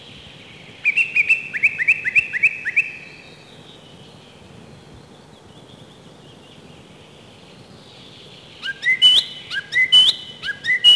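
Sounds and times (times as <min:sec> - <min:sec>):
song thrush singing in spring: 0:00.0 - 0:10.9.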